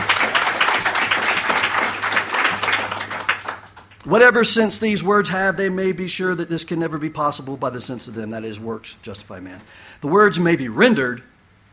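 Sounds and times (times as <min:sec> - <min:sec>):
crowd applauding: 0:00.0 - 0:04.0
speech: 0:04.1 - 0:11.3.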